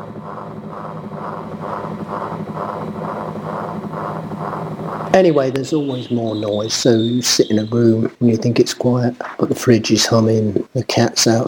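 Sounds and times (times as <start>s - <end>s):
whirly tubes rotating: 0.0s - 10.6s
speech: 5.2s - 11.4s.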